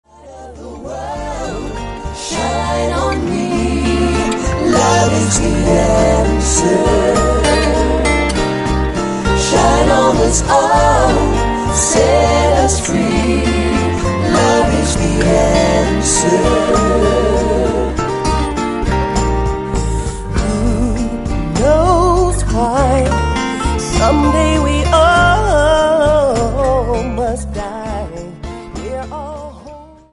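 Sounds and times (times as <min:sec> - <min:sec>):
acoustic music: 0:00.1 - 0:30.1.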